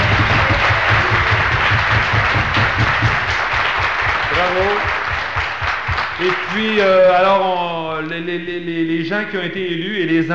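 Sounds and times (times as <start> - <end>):
applause for the president from a room full of people: 0.0 - 7.3
speech: 6.2 - 10.3.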